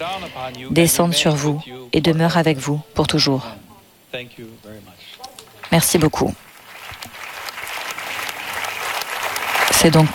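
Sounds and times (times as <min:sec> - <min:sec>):
speech: 0:00.2 - 0:05.1, 0:05.7 - 0:06.4, 0:09.8 - 0:10.1
packed synod hall audience applauding Pope Leo XIV: 0:05.4 - 0:10.1.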